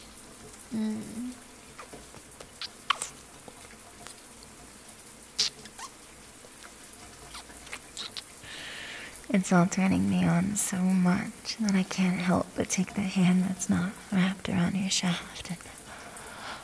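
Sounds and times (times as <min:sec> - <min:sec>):
shower running water: 0:00.0 - 0:16.6
water drips: 0:00.0 - 0:16.6
low voice humming: 0:00.7 - 0:01.4
speech: 0:00.7 - 0:01.4, 0:09.3 - 0:15.8.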